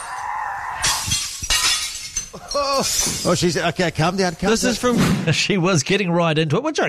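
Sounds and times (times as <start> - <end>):
glass smashing in a rage room: 0.0 - 5.0
speech: 2.5 - 6.8.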